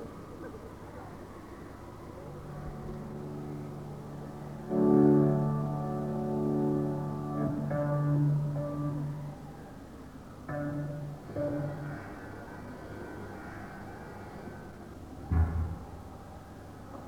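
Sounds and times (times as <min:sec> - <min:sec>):
instruments tuning during a soundcheck: 0:02.3 - 0:13.3, 0:15.3 - 0:16.8.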